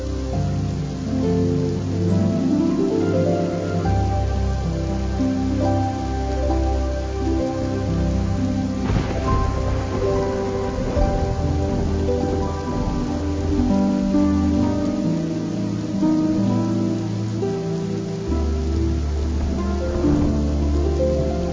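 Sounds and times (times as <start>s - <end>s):
louder crackles: 0.0s - 21.5s
rain patter in a quiet storm: 0.0s - 21.5s
soft harp melody: 0.0s - 21.5s.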